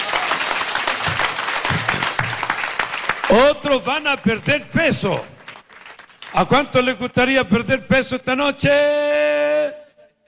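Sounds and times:
audience applauding: 0:00.0 - 0:06.6
speech: 0:03.3 - 0:05.3, 0:06.3 - 0:09.0.

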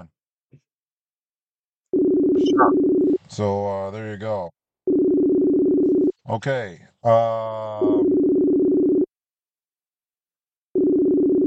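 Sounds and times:
phone line ringback tone on a call: 0:02.0 - 0:03.2, 0:04.9 - 0:06.1, 0:07.8 - 0:09.1, 0:10.8 - 0:11.4
speech: 0:02.4 - 0:04.6, 0:06.3 - 0:08.1.

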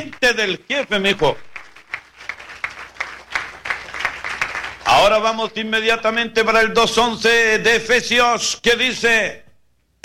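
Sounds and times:
speech: 0:00.0 - 0:01.5, 0:05.0 - 0:09.4
audience applause: 0:00.9 - 0:05.2.

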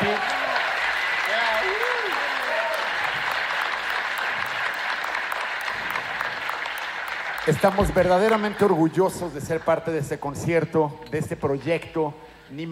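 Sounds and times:
audience applause: 0:00.0 - 0:09.9
speech: 0:07.5 - 0:12.7.

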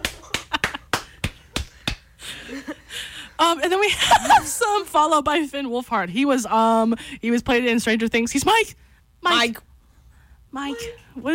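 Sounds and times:
hand claps on the microphone: 0:00.0 - 0:02.1
speech: 0:03.4 - 0:09.7, 0:10.5 - 0:11.3.

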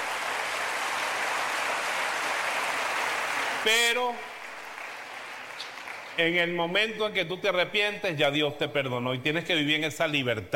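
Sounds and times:
audience applauding: 0:00.0 - 0:06.2
speech: 0:03.6 - 0:04.3, 0:06.2 - 0:10.5.

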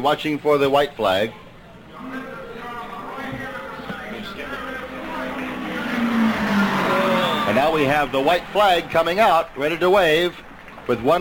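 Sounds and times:
speech: 0:00.0 - 0:01.4, 0:07.5 - 0:11.1
man giving running race commentary: 0:02.0 - 0:11.1
race car engine droning past on the track: 0:04.5 - 0:09.1.

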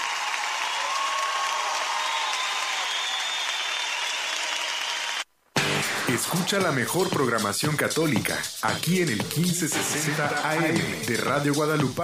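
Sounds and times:
applause during a Catholic radio program: 0:00.0 - 0:05.3
speech: 0:06.1 - 0:12.0.

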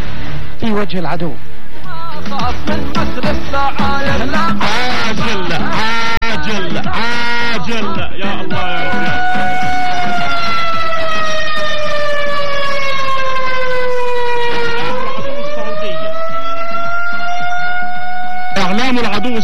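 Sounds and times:
speech: 0:00.6 - 0:01.5, 0:02.2 - 0:09.6
laughter: 0:03.0 - 0:10.3
air raid warning siren in Riyadh: 0:08.6 - 0:19.4.

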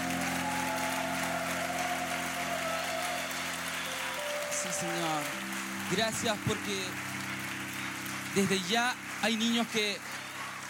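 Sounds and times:
audience applause: 0:00.0 - 0:10.6
speech: 0:04.6 - 0:07.0, 0:08.4 - 0:10.2.

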